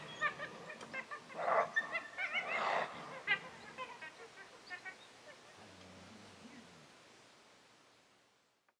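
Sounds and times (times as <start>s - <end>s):
coyote calls: 0.0s - 5.1s.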